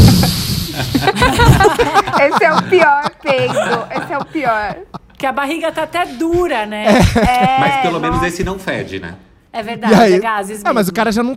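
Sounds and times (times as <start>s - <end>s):
vocal imitation of a punctured balloon deflating: 0.0s - 1.1s
laughter: 0.0s - 5.2s, 6.8s - 8.2s
speech: 1.8s - 11.3s.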